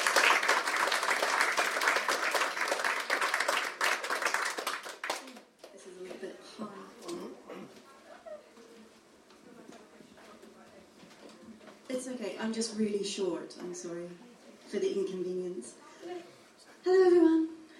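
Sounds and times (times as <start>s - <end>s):
audience applause: 0.0s - 5.6s
speech: 12.1s - 15.8s.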